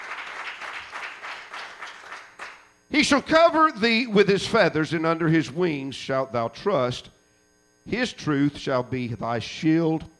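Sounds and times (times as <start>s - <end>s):
congregation clapping hands in praise during a church service: 0.0s - 2.8s
speech: 2.9s - 7.2s, 7.9s - 10.1s.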